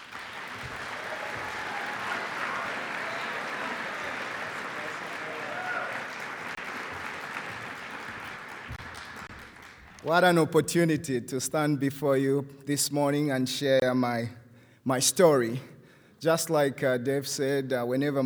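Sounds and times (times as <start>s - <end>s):
audience applause welcoming a speaker to the stage: 0.0s - 10.3s
speech: 10.0s - 18.2s.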